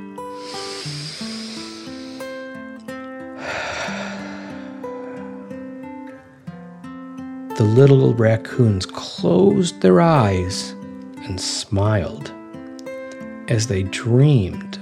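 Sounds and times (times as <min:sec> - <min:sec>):
gentle music with sustained stepping tones: 0:00.0 - 0:14.8
deep breath in and out: 0:00.3 - 0:02.6, 0:03.3 - 0:06.4
speech: 0:07.6 - 0:12.4, 0:13.5 - 0:14.7.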